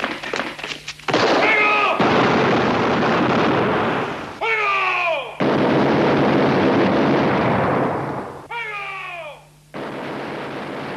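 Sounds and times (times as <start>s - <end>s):
rapid gunfire volleys: 0.1s - 4.3s, 5.4s - 8.5s, 9.7s - 10.9s.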